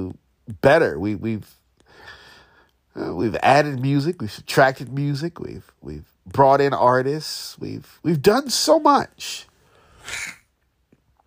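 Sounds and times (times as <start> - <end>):
speech: 0.6 - 2.2, 3.0 - 10.4
nose sniff: 9.7 - 10.4.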